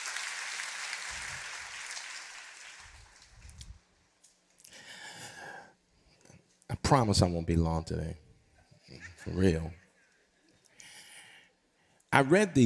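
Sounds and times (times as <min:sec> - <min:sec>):
audience applauding: 0:00.0 - 0:03.5
speech: 0:06.9 - 0:08.2, 0:09.2 - 0:09.8, 0:12.2 - 0:12.6.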